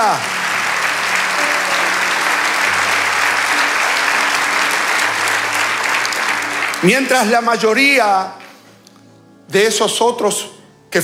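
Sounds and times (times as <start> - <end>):
audience applause: 0.0 - 8.7
speech: 6.8 - 8.4, 9.5 - 11.0.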